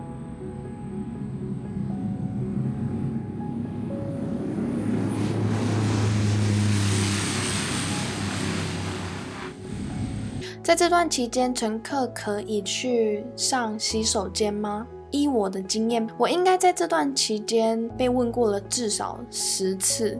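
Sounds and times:
airplane engines as plane starts taxiing: 0.0s - 10.5s
speech: 10.6s - 20.1s.

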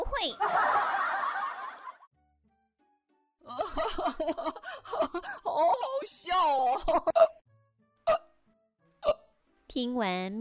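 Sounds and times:
speech: 0.2s - 0.5s, 4.2s - 7.4s, 9.7s - 10.3s
laughter: 0.4s - 2.0s, 3.5s - 5.2s
repeated hiccups: 8.0s - 8.4s, 9.0s - 9.4s.

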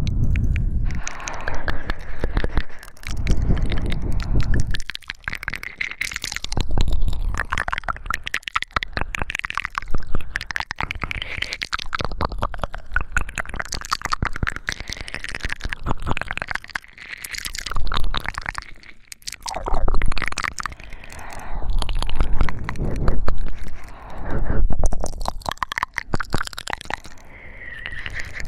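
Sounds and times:
wet mouth sounds and ear-sucking: 0.0s - 28.4s
heavy rough breathing: 0.8s - 4.8s, 20.7s - 24.8s.

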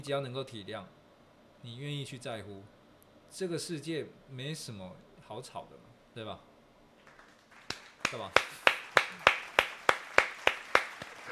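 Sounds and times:
speech: 0.0s - 1.0s, 1.6s - 6.5s, 8.1s - 8.5s
applause sound effect button: 7.0s - 11.3s.

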